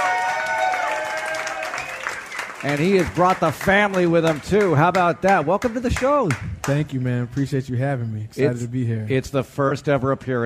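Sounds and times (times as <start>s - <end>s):
live audience applauding at the Stafford show location: 0.0s - 6.8s
speech: 2.6s - 10.4s.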